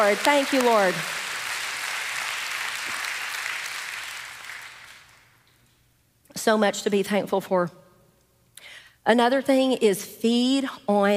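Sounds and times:
speech: 0.0s - 1.2s, 6.4s - 7.8s, 8.6s - 11.1s
audience hand clap of praise: 0.0s - 5.5s.

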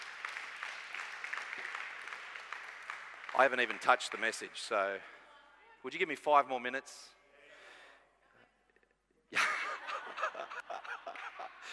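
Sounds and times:
audience clapping hands: 0.0s - 5.0s, 10.6s - 11.7s
speech: 3.4s - 5.2s, 5.8s - 7.2s
laughter: 9.3s - 11.7s.

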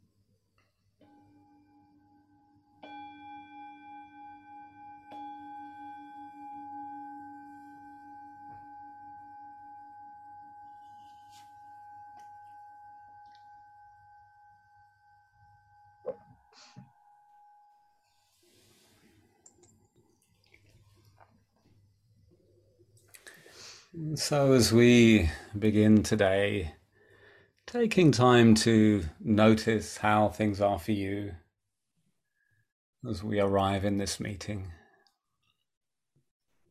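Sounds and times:
meditation bell ringing: 1.0s - 18.2s
speech: 23.9s - 26.8s, 27.7s - 31.4s, 33.0s - 34.8s.

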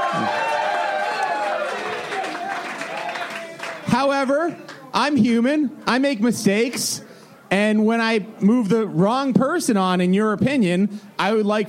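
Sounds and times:
audience cheering: 0.0s - 3.9s
speech: 4.0s - 11.6s.

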